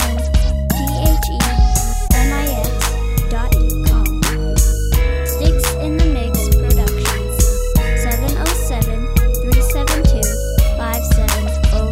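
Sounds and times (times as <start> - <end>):
slap bass: 0.0 - 11.9.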